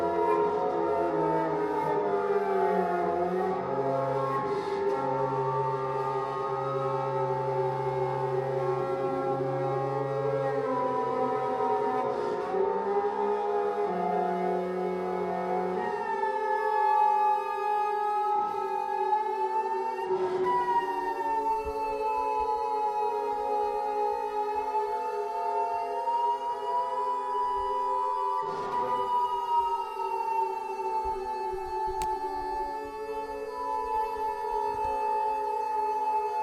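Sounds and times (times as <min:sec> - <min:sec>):
noise flute: 0:00.0 - 0:36.4.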